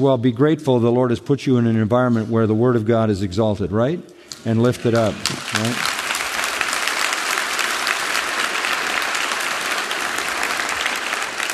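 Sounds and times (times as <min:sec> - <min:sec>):
speech: 0:00.0 - 0:05.9
crowd applauding: 0:04.5 - 0:11.5.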